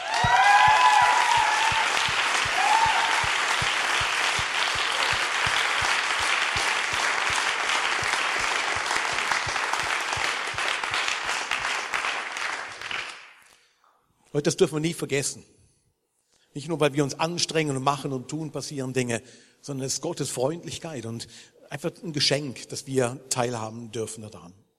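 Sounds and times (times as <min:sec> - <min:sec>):
audience applause: 0:00.0 - 0:13.4
speech: 0:14.4 - 0:15.6, 0:16.5 - 0:24.6.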